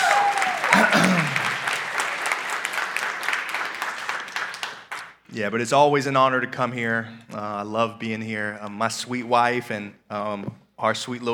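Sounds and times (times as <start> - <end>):
audience applause: 0.0 - 5.2
speech: 5.4 - 11.3.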